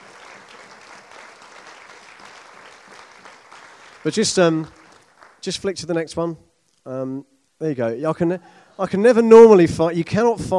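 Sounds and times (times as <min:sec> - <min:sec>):
audience clapping: 0:00.0 - 0:06.2
speech: 0:04.0 - 0:04.8, 0:05.4 - 0:10.5.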